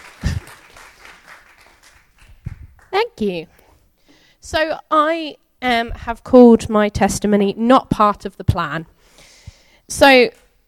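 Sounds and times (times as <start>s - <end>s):
audience applause: 0.0s - 3.0s
speech: 3.0s - 3.6s, 4.4s - 8.9s, 9.9s - 10.4s.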